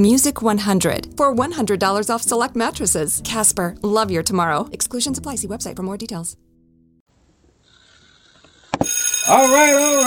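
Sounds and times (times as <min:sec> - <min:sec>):
speech: 0:00.0 - 0:06.4, 0:09.3 - 0:10.0
bell ringing: 0:08.8 - 0:10.0.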